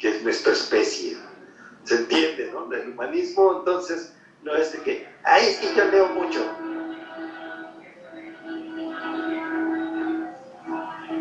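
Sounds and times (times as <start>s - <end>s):
speech: 0.2s - 6.8s
passing train droning: 5.2s - 11.2s.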